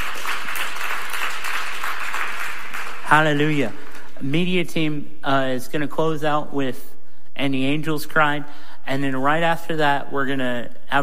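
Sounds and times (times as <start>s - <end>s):
audience giving a loud hand clap: 0.0s - 4.2s
speech: 3.1s - 11.0s.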